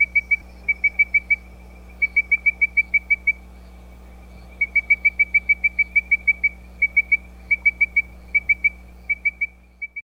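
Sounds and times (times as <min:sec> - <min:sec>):
Leptodactylus mystacinus frog calling: 0:00.0 - 0:10.0.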